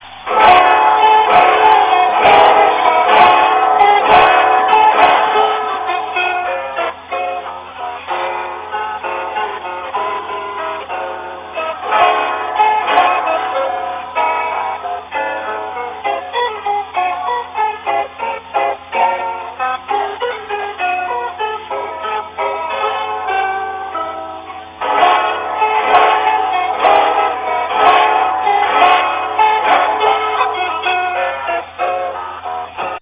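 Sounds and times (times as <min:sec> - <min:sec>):
guitar waltz: 0:00.0 - 0:33.0.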